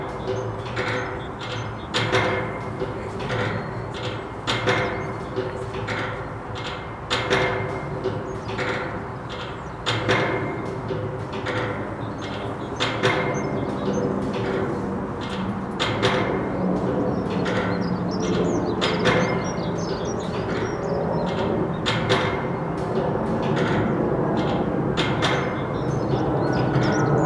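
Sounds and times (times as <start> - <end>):
wind: 0.0 - 27.2.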